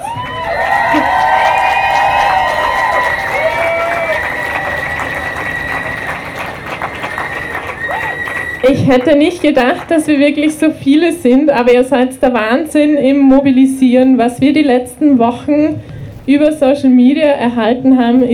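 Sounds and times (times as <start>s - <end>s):
crowd cheering and whooping: 0.0s - 9.2s
crowd applauding: 0.0s - 10.7s
speech: 8.6s - 18.3s.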